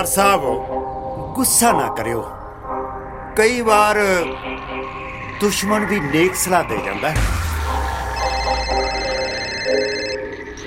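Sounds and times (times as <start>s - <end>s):
speech: 0.0s - 0.8s, 1.4s - 2.4s, 3.4s - 7.4s
telephone ringing with a thin high electronic tone: 8.2s - 10.4s.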